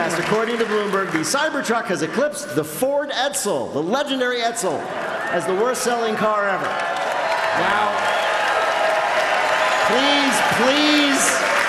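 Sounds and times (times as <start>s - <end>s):
audience clapping: 0.0s - 2.2s, 4.9s - 11.6s
speech: 0.2s - 7.0s, 7.6s - 8.2s, 9.9s - 11.4s.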